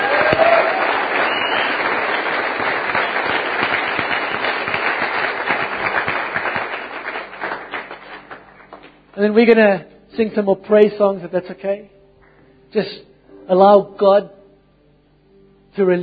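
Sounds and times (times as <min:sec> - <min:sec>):
crowd applauding: 0:00.0 - 0:09.0
whistle: 0:00.3 - 0:01.9
speech: 0:09.2 - 0:12.0, 0:12.7 - 0:14.4, 0:15.8 - 0:16.0.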